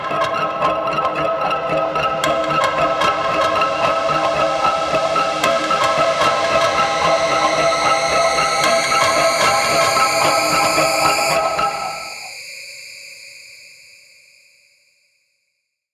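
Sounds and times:
cinematic music: 0.0 - 12.3.

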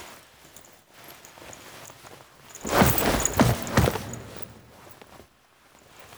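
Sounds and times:
foley sounds: 2.6 - 5.1.

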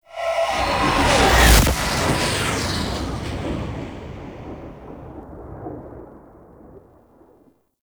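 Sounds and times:
vehicle passing slowly: 0.0 - 4.9.

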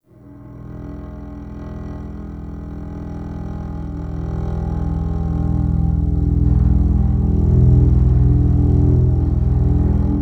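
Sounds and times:
drone: 3.0 - 10.2.

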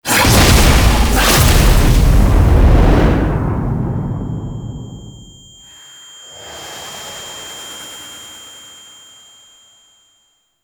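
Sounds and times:
door being destroyed: 0.1 - 3.5.

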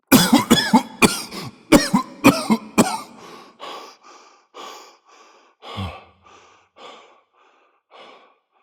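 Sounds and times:
person coughing: 0.1 - 3.5.

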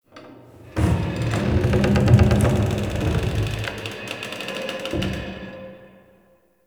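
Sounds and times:
wood creaking: 0.5 - 5.1.

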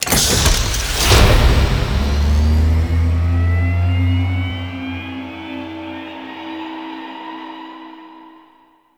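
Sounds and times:
coolant machine activating: 0.0 - 6.1.

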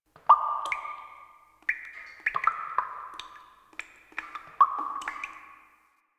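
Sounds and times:
water dripping: 0.1 - 6.0.

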